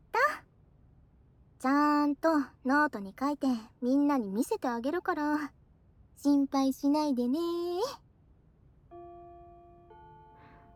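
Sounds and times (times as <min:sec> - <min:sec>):
speech: 0:01.6 - 0:05.6, 0:06.2 - 0:08.0
school bell chime: 0:08.9 - 0:10.7.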